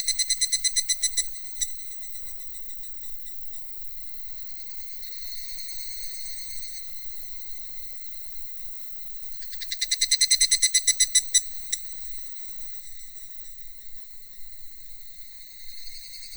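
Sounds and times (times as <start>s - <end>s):
cicada call: 0.0s - 3.4s, 9.3s - 16.3s.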